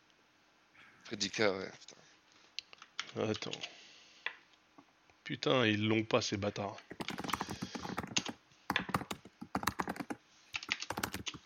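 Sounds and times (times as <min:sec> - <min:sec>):
speech: 0:01.1 - 0:02.0, 0:03.1 - 0:03.8, 0:05.3 - 0:07.3
computer keyboard typing: 0:06.9 - 0:11.4.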